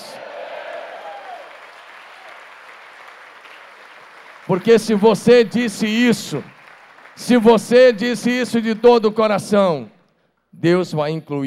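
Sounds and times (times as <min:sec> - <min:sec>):
audience applause: 0:00.0 - 0:08.3
speech: 0:04.4 - 0:06.5, 0:07.2 - 0:11.4.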